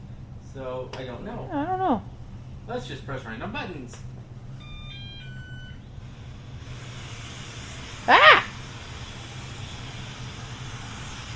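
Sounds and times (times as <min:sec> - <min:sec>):
speech: 0:00.6 - 0:04.2
robot vacuum running at high power: 0:04.6 - 0:11.3.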